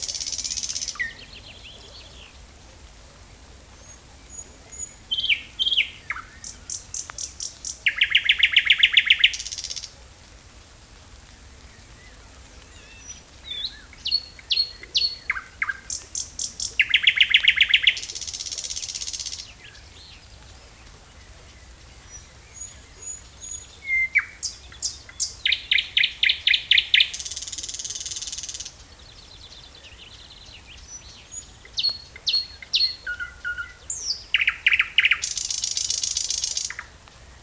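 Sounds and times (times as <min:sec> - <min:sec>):
thrush nightingale song with whistles, rattles and buzzy trill: 0:00.0 - 0:02.6, 0:03.8 - 0:10.0, 0:11.6 - 0:37.4.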